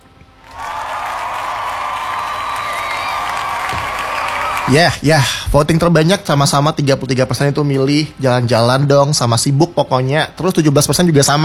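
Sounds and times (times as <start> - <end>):
audience applause: 0.4 - 5.0
cheering: 0.4 - 5.0
speech: 4.7 - 11.4.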